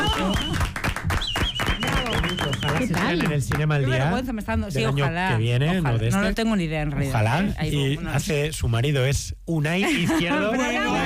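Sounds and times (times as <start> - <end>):
audience applause: 0.0 - 3.8
speech: 2.8 - 11.0.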